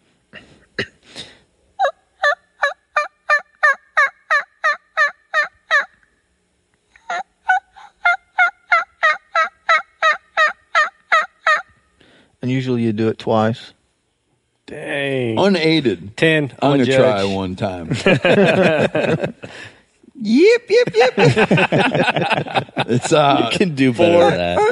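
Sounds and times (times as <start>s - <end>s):
hen turkey yelps: 1.8s - 5.9s, 7.0s - 11.7s
speech: 12.6s - 13.8s, 15.4s - 24.7s
laughter: 17.9s - 19.6s, 20.5s - 24.7s.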